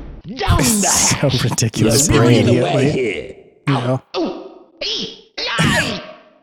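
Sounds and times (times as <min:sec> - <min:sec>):
video game jester sound effect: 0:00.5 - 0:03.0
speech: 0:00.6 - 0:05.9.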